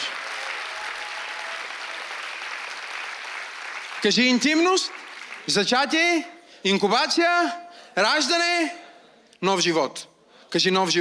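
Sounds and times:
large crowd clapping: 0:00.0 - 0:05.7
speech: 0:04.0 - 0:08.8, 0:09.4 - 0:10.9.

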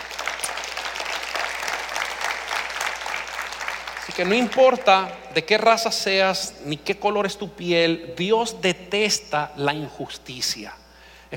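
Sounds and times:
audience applauding: 0:00.0 - 0:05.4
speech: 0:04.2 - 0:11.3.

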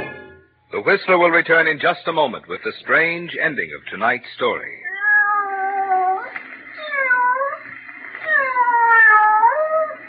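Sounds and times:
speech: 0:00.8 - 0:04.8
cat meowing sound effect: 0:04.9 - 0:07.6, 0:08.2 - 0:10.0.

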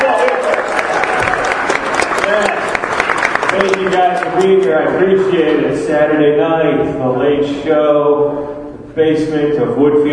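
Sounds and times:
scattered cheers: 0:00.0 - 0:02.6
audience applause: 0:00.0 - 0:04.7
speech: 0:03.6 - 0:10.1.

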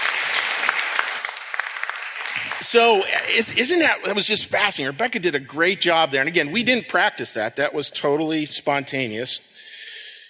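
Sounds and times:
audience clapping: 0:00.0 - 0:04.3
speech: 0:02.6 - 0:09.5.

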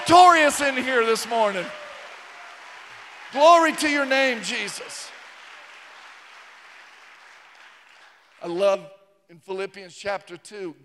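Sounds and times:
audience clapping: 0:00.0 - 0:08.6
speech: 0:00.1 - 0:01.9, 0:03.3 - 0:05.2, 0:08.4 - 0:10.8.

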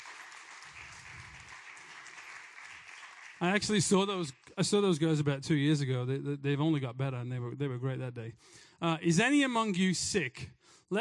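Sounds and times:
audience clapping for worship team: 0:00.0 - 0:04.6
speech: 0:03.4 - 0:10.9.

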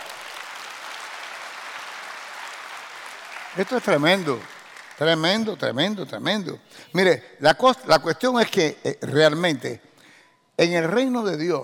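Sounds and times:
audience applause: 0:00.0 - 0:05.0
speech: 0:03.6 - 0:09.9, 0:10.6 - 0:11.6.

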